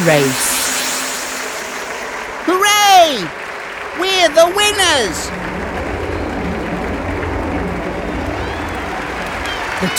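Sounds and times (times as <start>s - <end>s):
speech: 0.0s - 0.5s, 3.1s - 3.4s, 4.0s - 5.5s
group of children clapping and cheering: 2.4s - 9.9s.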